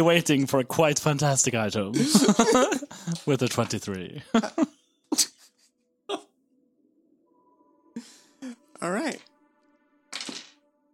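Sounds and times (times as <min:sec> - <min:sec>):
speech: 0:00.0 - 0:05.4
low hum: 0:01.9 - 0:04.7
laughter: 0:01.9 - 0:06.2
several dice tumbling onto a hard surface: 0:10.2 - 0:10.6.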